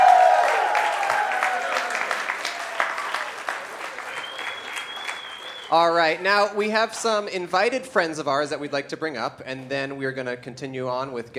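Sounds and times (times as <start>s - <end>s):
applause from a large indoor theater audience: 0.0s - 6.4s
speech: 5.7s - 11.3s.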